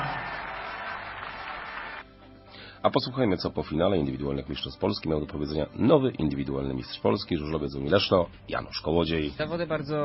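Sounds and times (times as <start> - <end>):
crowd applause: 0.0 - 2.0
speech: 2.8 - 10.0.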